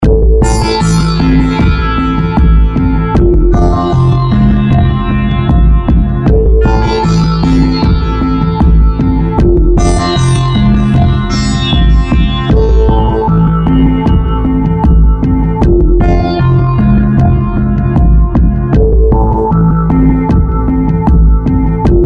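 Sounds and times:
rhythm with instruments: 0.0 - 22.0.

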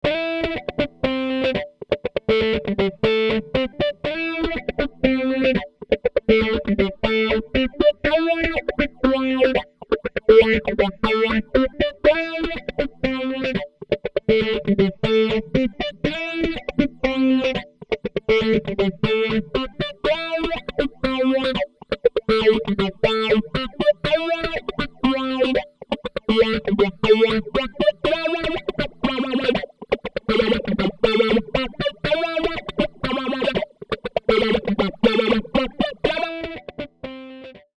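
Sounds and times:
funk guitar with phaser effect: 0.0 - 37.7.

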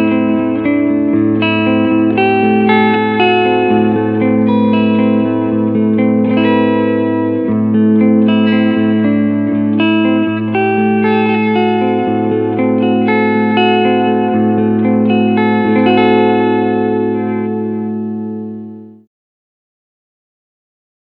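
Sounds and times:
clean guitar picking on both pickups: 0.0 - 19.0.

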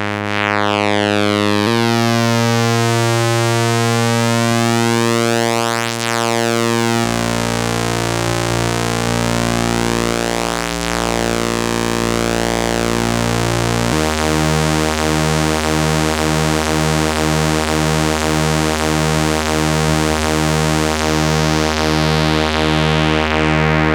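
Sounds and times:
dry sawtooth synth: 0.0 - 23.8.

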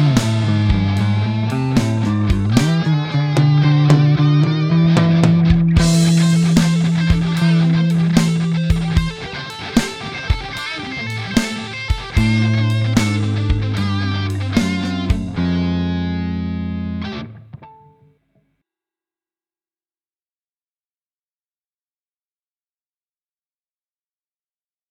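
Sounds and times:
electric guitar lead: 0.0 - 18.1.

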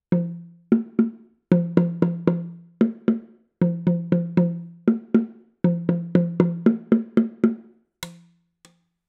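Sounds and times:
bongo recorded with Neumann TLM102 microphone: 0.1 - 8.4.

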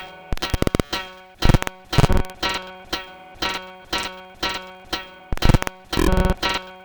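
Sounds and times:
Anamono Xmini granulator: 0.4 - 2.4, 5.4 - 6.4.

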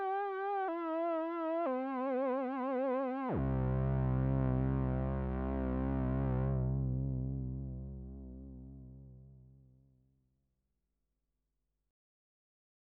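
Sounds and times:
Moog Matriarch synthesizer with aftertouch: 0.0 - 9.3.

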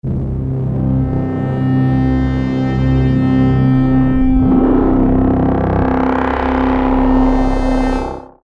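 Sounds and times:
scoring strings: 0.6 - 7.8.

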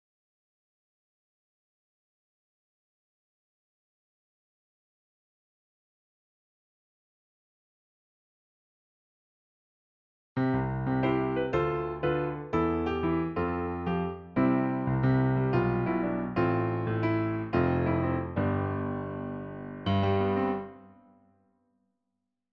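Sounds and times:
natural piano: 10.4 - 21.4.

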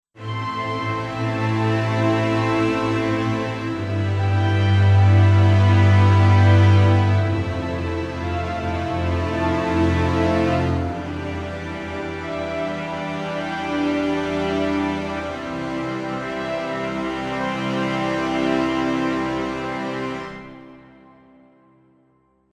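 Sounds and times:
tragic winter strings: 0.2 - 21.4.

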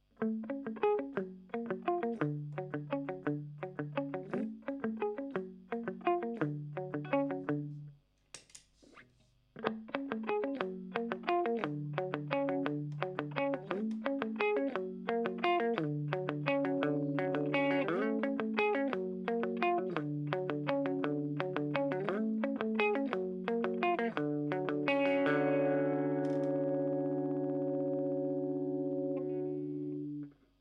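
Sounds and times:
clean guitar picking: 0.2 - 7.9, 9.6 - 30.3.

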